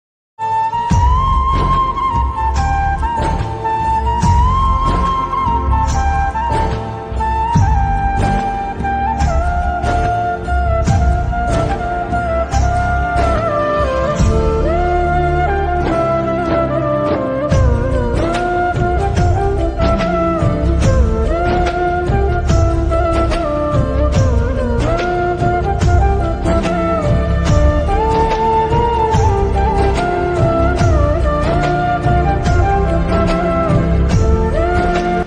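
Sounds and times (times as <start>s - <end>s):
slowed background music with reverb: 0.4s - 35.2s.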